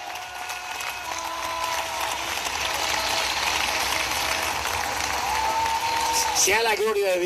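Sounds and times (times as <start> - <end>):
audience applause: 0.0 - 7.2
speech: 6.4 - 7.2.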